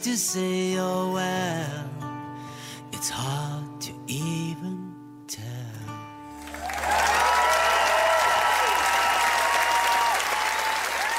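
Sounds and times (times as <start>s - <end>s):
speech: 0.0s - 2.1s, 3.0s - 5.6s
concert audience applause: 6.4s - 11.1s.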